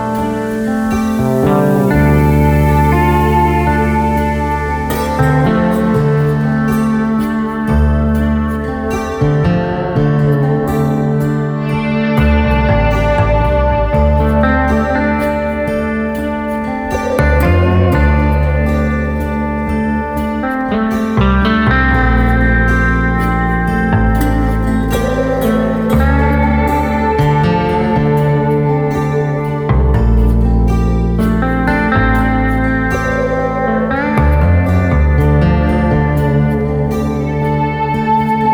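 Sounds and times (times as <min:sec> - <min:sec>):
music: 0:00.0 - 0:38.5.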